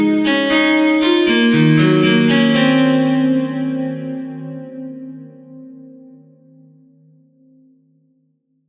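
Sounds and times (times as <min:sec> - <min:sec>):
classical melodies: 0:00.0 - 0:05.6.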